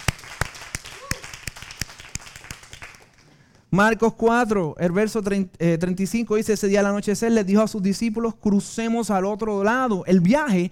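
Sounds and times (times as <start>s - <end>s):
audience clapping: 0.0s - 3.6s
speech: 3.7s - 10.7s.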